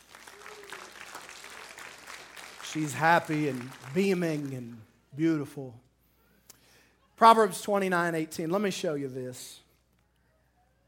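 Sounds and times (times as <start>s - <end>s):
audience clapping for a recently married couple: 0.0s - 4.8s
speech: 2.8s - 5.9s, 7.2s - 9.6s.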